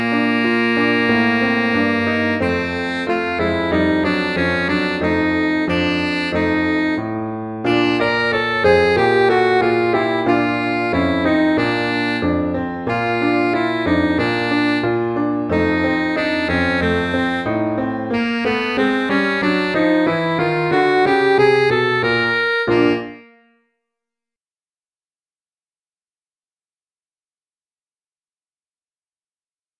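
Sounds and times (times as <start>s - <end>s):
alto sax solo: 0.0s - 23.6s.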